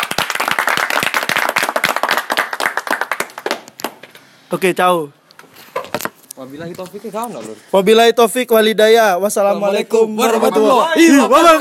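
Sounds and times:
hand clapping: 0.0 - 4.1
speech: 4.5 - 5.2, 6.4 - 11.6.

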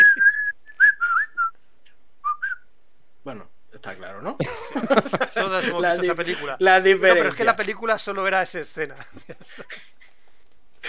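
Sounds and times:
lone whistler playing a bright jaunty march melody: 0.0 - 1.6
speech: 4.2 - 9.7
laughter: 4.4 - 8.1, 8.7 - 10.1.

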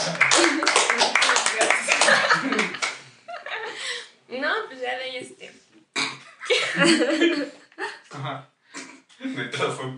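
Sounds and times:
scattered hand clapping: 0.0 - 3.0
laughter and chuckling: 2.0 - 3.8, 6.2 - 8.1
speech: 6.8 - 7.6, 8.2 - 8.5, 9.4 - 9.9.

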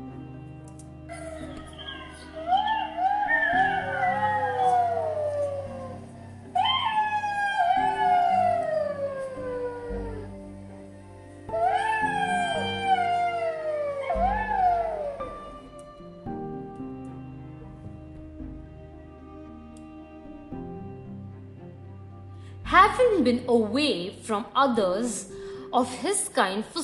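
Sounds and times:
pack of jackals howling: 1.2 - 10.5, 11.5 - 15.8
speech: 23.2 - 26.8.

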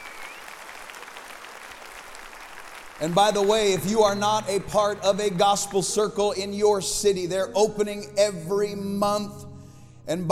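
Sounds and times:
audience clapping hands: 0.0 - 6.1
speech: 3.0 - 9.5, 10.1 - 10.2.

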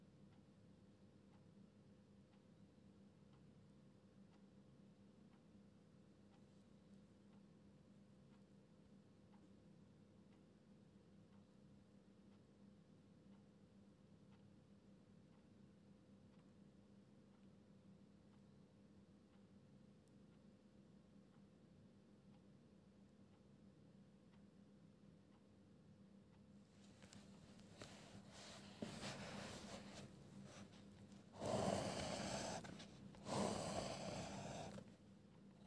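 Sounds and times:
pencil scratching: 27.9 - 34.9.

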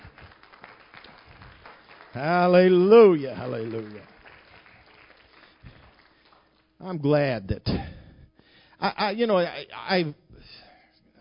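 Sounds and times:
audience clapping hands: 0.0 - 7.0
speech: 2.2 - 4.1, 6.8 - 7.9, 8.8 - 10.6.

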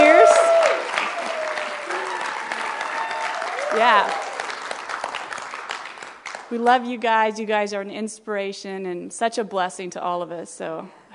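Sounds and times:
audience applause for anniversary couple: 0.0 - 6.5
speech: 3.8 - 4.2, 6.5 - 11.0.

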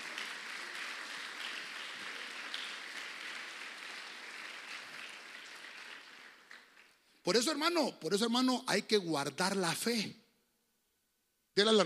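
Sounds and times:
audience clapping: 0.0 - 7.6
speech: 7.3 - 10.2, 11.6 - 11.8.

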